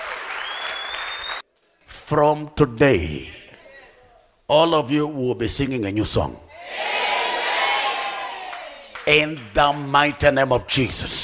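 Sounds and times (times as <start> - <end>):
audience clapping: 0.0 - 1.4, 7.9 - 10.2
speech: 2.1 - 3.4, 4.5 - 6.9, 9.1 - 11.2.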